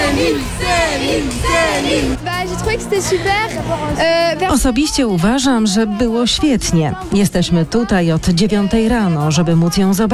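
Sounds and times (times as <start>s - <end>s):
crowd of fans cheering outside a hotel: 0.0s - 2.8s
speech: 0.2s - 10.1s.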